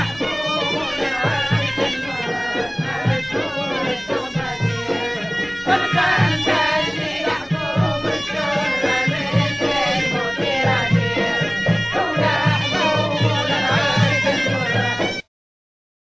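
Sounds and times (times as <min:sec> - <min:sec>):
person singing in Al-Salihi style in Tunis: 0:00.0 - 0:15.2.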